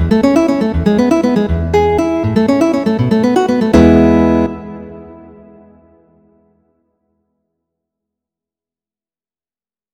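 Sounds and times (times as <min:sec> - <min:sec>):
guitar allegretto: 0:00.0 - 0:05.9.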